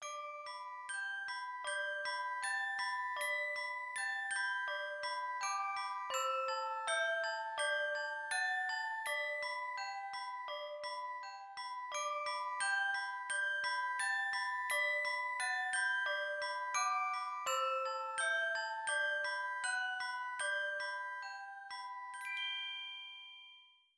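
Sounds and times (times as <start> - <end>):
music box melody: 0.0 - 23.9.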